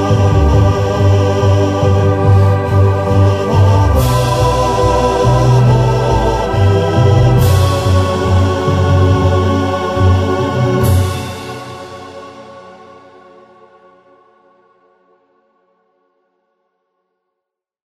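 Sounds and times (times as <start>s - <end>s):
vocal with effects: 0.0s - 13.2s.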